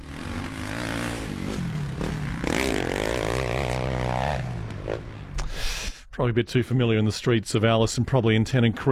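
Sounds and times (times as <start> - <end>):
dirt bike engines revving: 0.0 - 5.4
speech: 6.2 - 8.8.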